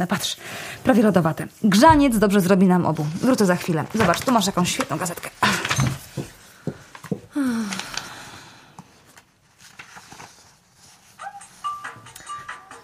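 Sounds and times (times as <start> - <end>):
speech: 0.0 - 5.9
telephone ringing: 11.6 - 12.8.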